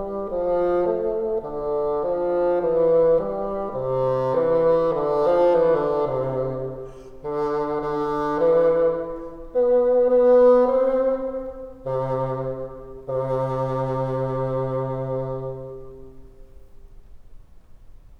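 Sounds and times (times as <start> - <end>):
bassoon playing top part: 0.0 - 16.4.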